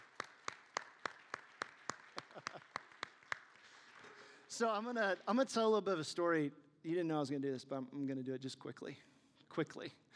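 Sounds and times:
applause: 0.0 - 5.3
speech: 4.6 - 10.1.

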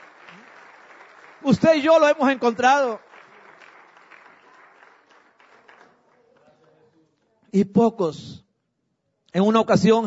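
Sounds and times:
audience applause: 0.0 - 6.8
speech: 1.4 - 3.0, 7.6 - 8.4, 9.3 - 10.0.

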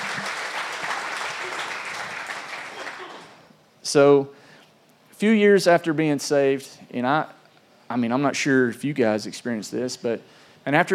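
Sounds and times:
audience clapping: 0.0 - 3.4
speech: 3.9 - 4.4, 5.2 - 10.9.

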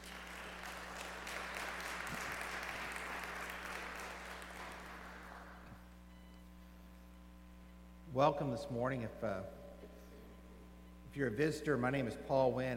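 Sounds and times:
church congregation applauding the praise team: 0.0 - 5.7
speech: 8.2 - 9.6, 11.1 - 12.7.

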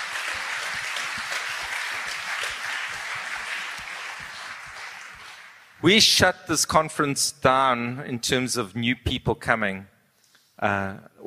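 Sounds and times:
audience round of applause: 0.0 - 5.8
speech: 5.8 - 9.9, 10.6 - 11.2.

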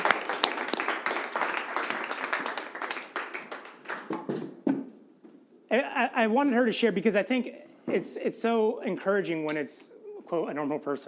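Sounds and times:
crowd applauding: 0.0 - 4.3
sharp individual claps: 0.0 - 4.5
speech: 5.7 - 11.0.

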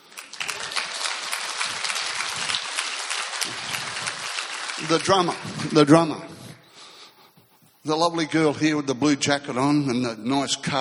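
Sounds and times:
audience cheering: 0.1 - 6.1
speech: 4.8 - 6.3, 7.8 - 10.7.

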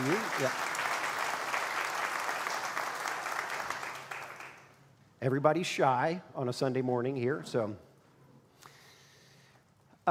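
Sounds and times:
faint applause from audience: 0.0 - 4.7
speech: 0.4 - 0.7, 5.2 - 7.9.

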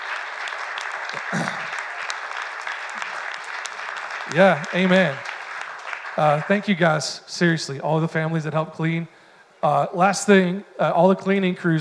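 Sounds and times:
church audience clapping hands: 0.0 - 7.2
speech: 1.3 - 1.6, 4.3 - 5.3, 6.2 - 11.7.

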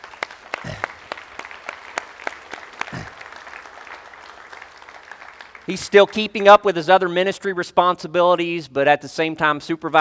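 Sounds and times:
small audience round of applause: 0.0 - 6.2
speech: 5.7 - 9.9.

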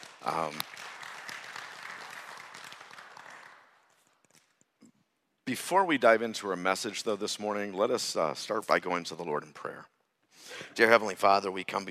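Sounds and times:
audience applause: 0.0 - 3.8
speech: 0.2 - 0.8, 5.5 - 9.9, 10.6 - 11.8.

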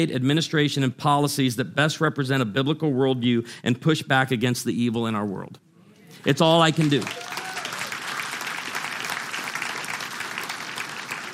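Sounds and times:
speech: 0.0 - 7.2
crowd applauding: 6.3 - 11.3.

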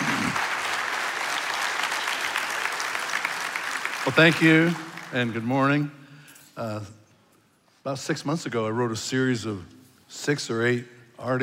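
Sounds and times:
church congregation at Nineveh applauding a guest preacher: 0.0 - 5.8
speech: 4.1 - 6.0, 6.6 - 7.0, 7.8 - 11.4.

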